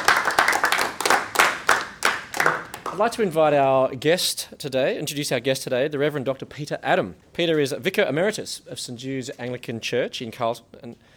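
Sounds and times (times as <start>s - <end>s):
audience applause: 0.0s - 3.1s
speech: 3.0s - 11.1s.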